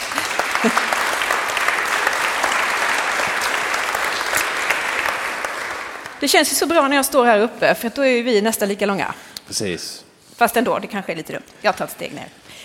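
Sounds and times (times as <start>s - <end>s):
crowd clapping: 0.0s - 7.2s
speech: 0.6s - 1.0s, 6.2s - 12.6s.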